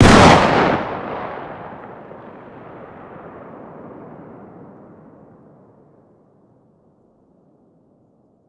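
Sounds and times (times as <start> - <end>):
distant 12 gauge shotgun fire outdoors: 0.0 - 4.1.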